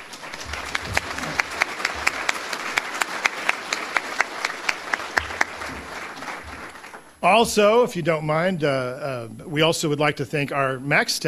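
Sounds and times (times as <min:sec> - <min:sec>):
round of applause: 0:00.0 - 0:07.2
speech: 0:07.2 - 0:11.2.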